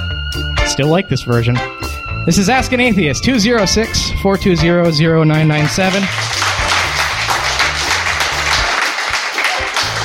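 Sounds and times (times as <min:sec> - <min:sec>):
speech: 0:00.8 - 0:06.4
applause: 0:05.6 - 0:10.0.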